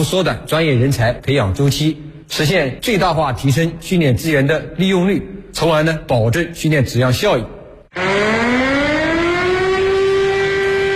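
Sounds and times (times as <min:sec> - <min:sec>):
speech: 0:00.0 - 0:08.2
air raid siren: 0:07.9 - 0:10.9.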